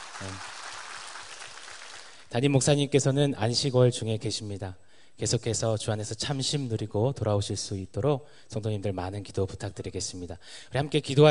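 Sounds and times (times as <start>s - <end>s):
audience applause: 0.0s - 2.3s
speech: 0.2s - 0.5s, 2.3s - 11.2s.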